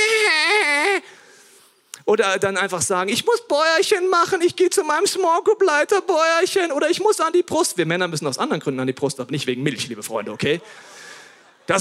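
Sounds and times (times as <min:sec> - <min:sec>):
voice imitating a whining crying baby: 0:00.0 - 0:01.1
speech: 0:02.1 - 0:11.0.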